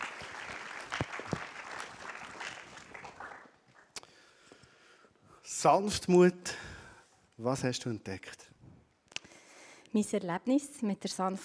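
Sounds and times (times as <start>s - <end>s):
audience applause: 0.0s - 4.0s
speech: 5.6s - 6.6s, 7.4s - 8.4s, 10.0s - 11.4s.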